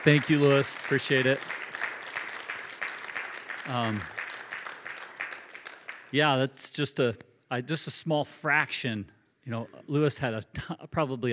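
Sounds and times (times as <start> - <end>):
speech: 0.0 - 1.6, 3.7 - 4.1, 6.1 - 11.3
audience applause: 0.0 - 6.3.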